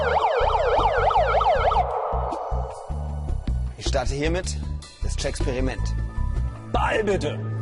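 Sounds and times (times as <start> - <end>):
megaphone siren wailing at a soap-bubble tennis match: 0.0 - 2.4
low pulsing tone: 0.0 - 3.7
speech: 4.0 - 6.0, 6.7 - 7.5.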